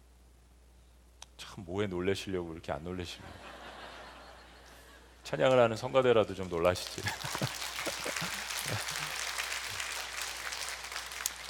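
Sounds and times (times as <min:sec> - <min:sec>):
speech: 0:01.6 - 0:03.5, 0:05.3 - 0:07.6
laughter: 0:03.2 - 0:05.1, 0:06.9 - 0:09.9
audience clapping: 0:05.4 - 0:11.4.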